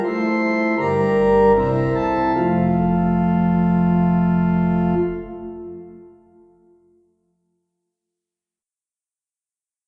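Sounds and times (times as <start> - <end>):
organ: 0.0 - 6.3.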